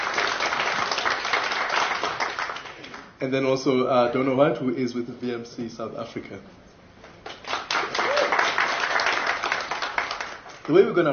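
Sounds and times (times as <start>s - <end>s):
crowd applauding: 0.0s - 3.1s, 7.3s - 11.0s
speech: 3.2s - 6.6s, 10.7s - 11.1s.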